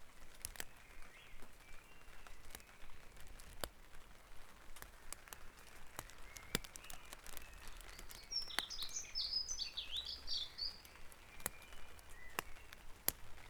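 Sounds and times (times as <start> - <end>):
bird song: 0.5 - 3.2, 5.9 - 13.4.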